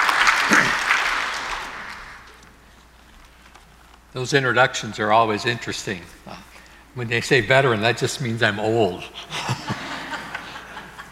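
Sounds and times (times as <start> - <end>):
audience applause: 0.0 - 2.4
speech: 4.2 - 6.4, 7.0 - 9.4
laughter: 9.0 - 11.0.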